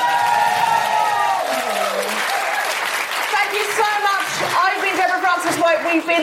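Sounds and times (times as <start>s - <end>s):
audience cheering: 0.0s - 4.7s
audience applause: 0.0s - 6.2s
speech: 5.6s - 6.2s.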